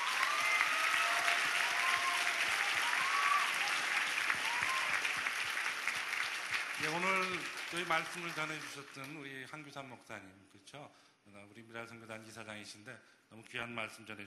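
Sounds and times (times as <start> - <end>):
audience applause: 0.0 - 9.1
speech: 6.8 - 14.2.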